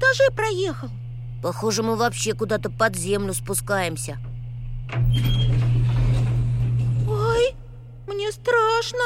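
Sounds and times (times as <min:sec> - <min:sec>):
elevator motor noise: 0:00.0 - 0:09.0
low hum: 0:00.0 - 0:09.0
speech: 0:00.2 - 0:04.3, 0:04.9 - 0:05.7, 0:08.2 - 0:09.0
elevator doors sliding open: 0:04.8 - 0:07.5.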